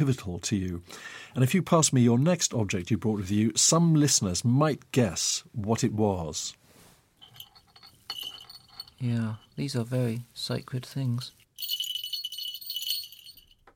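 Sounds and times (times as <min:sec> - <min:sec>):
speech: 0:00.0 - 0:06.6, 0:09.0 - 0:11.8
two small hawk bells from a trained hawk jingling: 0:07.2 - 0:13.7.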